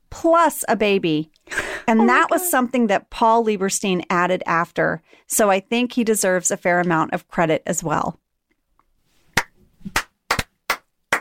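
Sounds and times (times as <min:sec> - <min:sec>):
speech: 0:00.2 - 0:08.2
slow clap building into big clap: 0:09.3 - 0:11.2.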